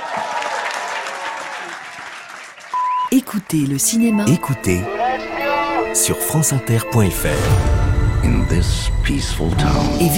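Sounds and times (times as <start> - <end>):
sustained applause from a large audience: 0.0 - 2.8
speech: 3.1 - 10.1.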